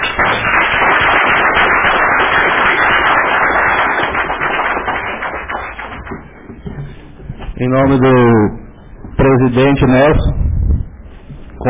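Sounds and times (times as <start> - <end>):
crowd applause: 0.0 - 6.3
speech: 7.6 - 8.6, 9.2 - 10.4.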